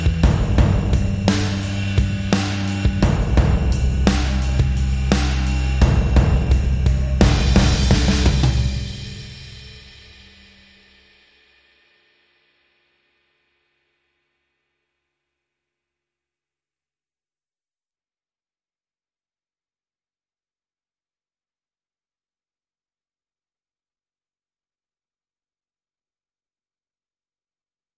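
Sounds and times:
bass: 0.0s - 10.6s
drums: 0.0s - 13.3s.

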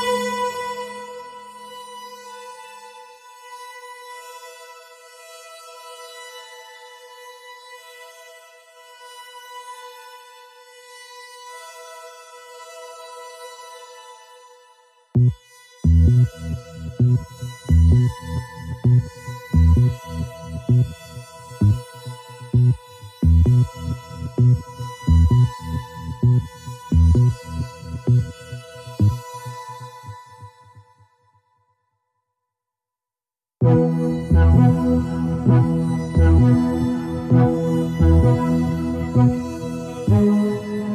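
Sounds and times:
Moog synthesizer bass: 15.2s - 30.5s, 33.6s - 40.9s.

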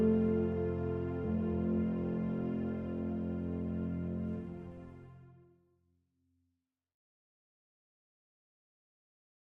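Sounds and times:
strings: 0.0s - 5.5s.

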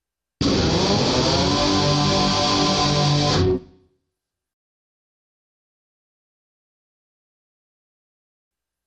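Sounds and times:
solo guitar riff: 0.4s - 3.8s.

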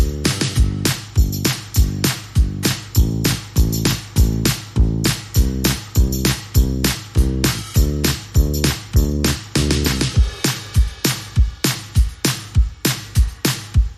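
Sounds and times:
bass: 0.0s - 10.4s
drums: 0.0s - 13.9s.

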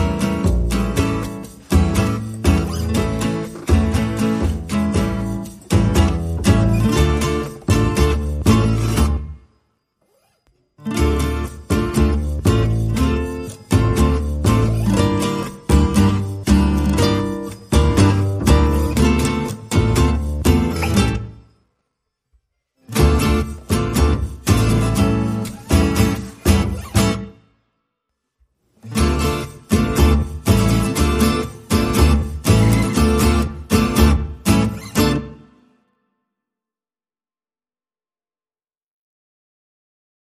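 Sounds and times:
bass: 0.0s - 9.4s, 10.9s - 21.5s, 22.9s - 27.4s, 28.9s - 35.4s
guitars: 0.0s - 21.8s, 22.8s - 27.6s, 28.7s - 35.8s.

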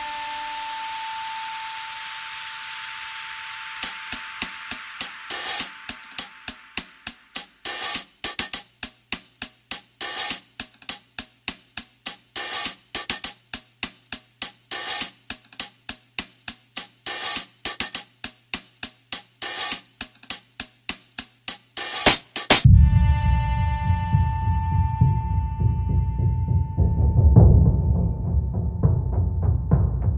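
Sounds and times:
drums: 3.6s - 30.1s
sound effects: 22.6s - 29.0s.

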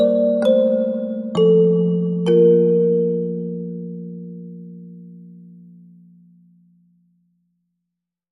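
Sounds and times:
kalimba: 0.0s - 6.0s.

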